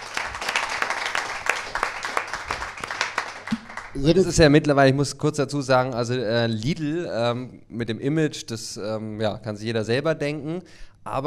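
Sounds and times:
audience applause: 0.0s - 4.4s
speech: 3.9s - 11.2s.

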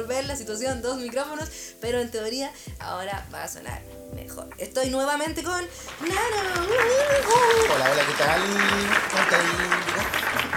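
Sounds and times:
speech: 0.0s - 10.2s
circus crowd applause: 5.9s - 10.5s.

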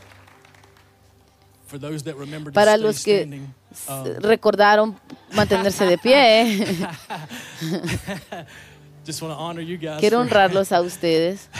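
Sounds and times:
audience applauding: 0.0s - 1.4s
speech: 1.7s - 11.5s
laughter: 5.3s - 8.7s.

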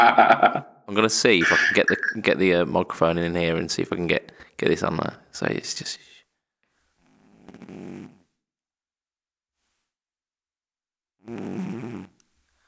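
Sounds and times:
laughter: 0.0s - 0.6s, 1.4s - 2.2s
speech: 0.0s - 6.1s, 7.6s - 8.2s, 11.3s - 12.1s
cat snoring on a sofa: 7.0s - 8.3s, 11.2s - 12.2s.

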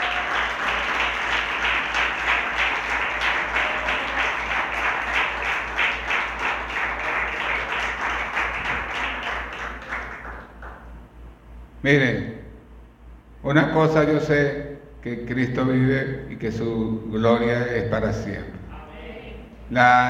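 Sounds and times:
audience applause: 0.0s - 10.8s
speech: 11.8s - 12.3s, 13.5s - 18.5s, 19.7s - 20.0s.

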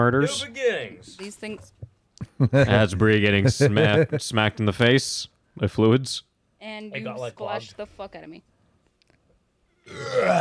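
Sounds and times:
speech: 0.0s - 8.5s, 9.9s - 10.3s
person burping: 9.8s - 10.3s.

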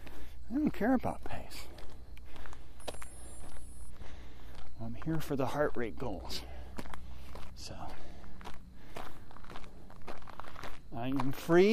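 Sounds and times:
footsteps of a person walking up a hill: 0.0s - 11.7s
speech: 0.5s - 1.7s, 4.8s - 6.6s, 7.6s - 8.0s, 10.9s - 11.7s.

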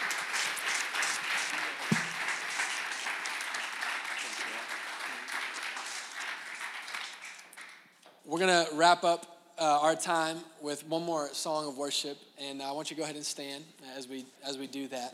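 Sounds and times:
audience applause: 0.0s - 7.7s
speech: 8.3s - 15.1s.

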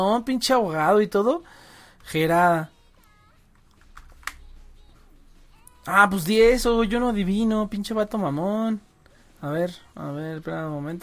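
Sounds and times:
speech: 0.0s - 2.7s, 5.8s - 11.0s
low hum: 0.0s - 11.0s
fingers tapping on a mobile phone touchscreen keyboard: 3.6s - 4.5s.

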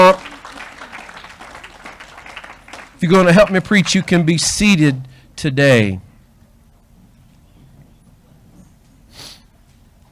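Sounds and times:
crowd applauding: 0.0s - 4.8s
speech: 3.0s - 6.1s.

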